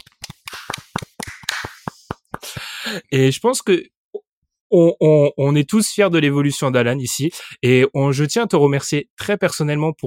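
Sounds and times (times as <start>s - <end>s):
round of applause: 0.0s - 2.8s
speech: 2.9s - 4.0s, 4.7s - 10.0s.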